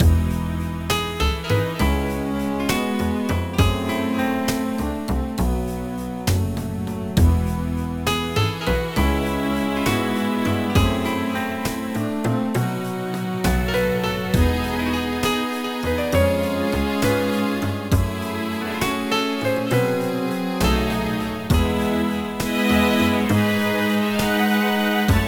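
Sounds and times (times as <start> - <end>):
slideshow background music: 0.0 - 25.2.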